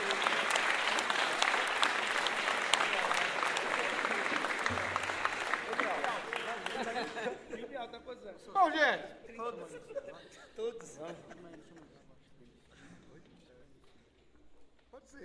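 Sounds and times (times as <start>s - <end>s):
audience applause: 0.0s - 7.3s
laughter: 0.0s - 8.0s, 9.5s - 13.1s.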